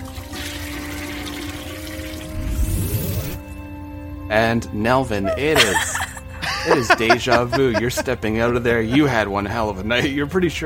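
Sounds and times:
toilet flushing: 0:00.0 - 0:03.1
speech: 0:04.3 - 0:06.0, 0:06.6 - 0:10.6
laughter: 0:05.2 - 0:10.3.

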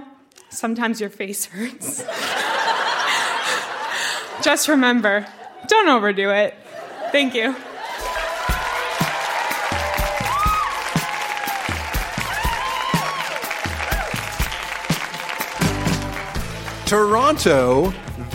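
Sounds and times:
speech: 0:00.5 - 0:02.6, 0:04.4 - 0:07.7, 0:16.9 - 0:18.3
laughter: 0:01.8 - 0:05.7, 0:06.6 - 0:10.4
live audience applause: 0:07.7 - 0:17.2.

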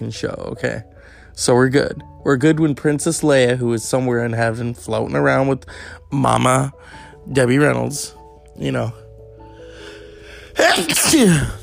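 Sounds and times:
speech: 0:00.0 - 0:09.0, 0:10.6 - 0:11.6
loud sneeze: 0:10.6 - 0:11.6.

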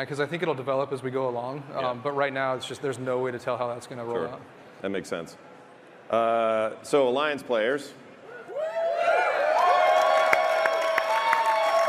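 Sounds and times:
speech: 0:00.0 - 0:05.5, 0:06.1 - 0:08.0
audience cheering and screaming: 0:08.4 - 0:11.8.

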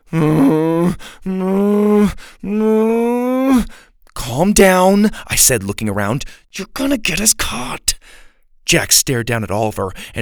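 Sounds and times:
breaths: 0:00.0 - 0:01.3, 0:02.0 - 0:02.5, 0:03.6 - 0:04.1, 0:06.2 - 0:06.5, 0:08.0 - 0:08.6, 0:09.9 - 0:10.2
person imitating cow moaning: 0:00.0 - 0:03.7
speech: 0:00.1 - 0:02.8, 0:04.4 - 0:10.2.

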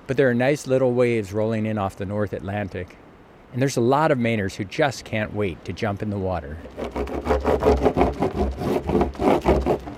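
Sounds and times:
speech: 0:00.1 - 0:09.9
surfboard being waxed: 0:06.6 - 0:09.9.

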